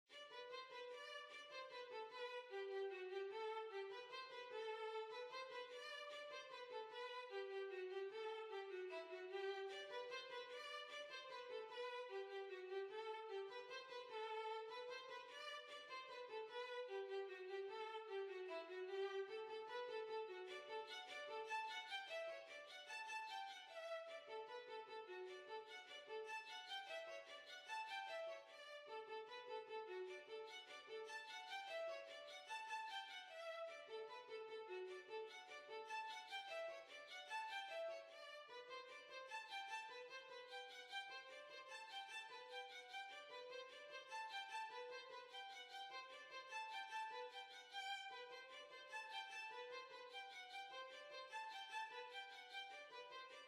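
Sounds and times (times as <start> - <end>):
violin: 0.0 - 53.4.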